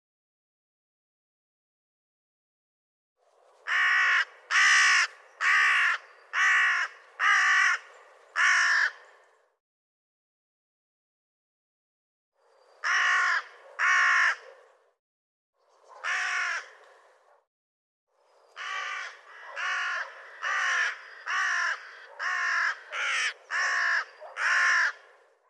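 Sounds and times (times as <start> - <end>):
bird giving croaking caws: 3.7 - 9.3, 12.8 - 14.6, 16.0 - 17.0, 18.6 - 25.2.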